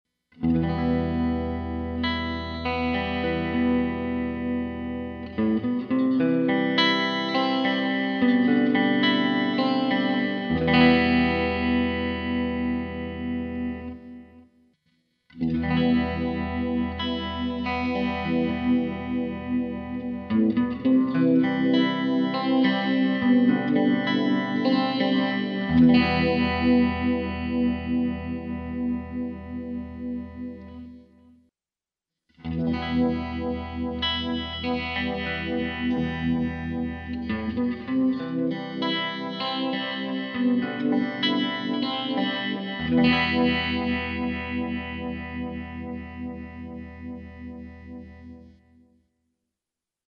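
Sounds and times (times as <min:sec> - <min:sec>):
guitar through Axe-Fx amp modeler: 0:00.4 - 0:14.4, 0:15.3 - 0:31.0, 0:32.4 - 0:48.5.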